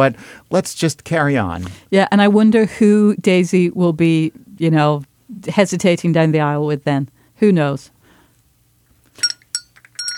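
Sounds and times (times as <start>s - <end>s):
speech: 0.0s - 8.0s
servant's summoning bell ringing: 9.2s - 10.1s.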